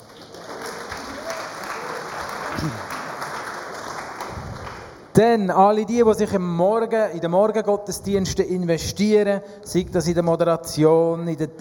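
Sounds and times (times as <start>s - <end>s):
audience applause: 0.0s - 5.1s
speech: 2.6s - 2.8s, 5.2s - 11.5s.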